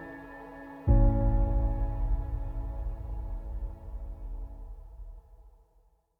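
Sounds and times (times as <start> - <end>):
positive cinematic music: 0.0 - 5.4.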